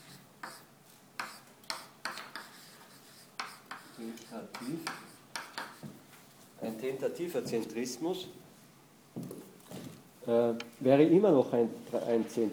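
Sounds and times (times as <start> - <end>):
writing on a board during a lecture: 0.0 - 6.0
speech: 4.0 - 5.1, 6.6 - 8.4, 10.3 - 12.5.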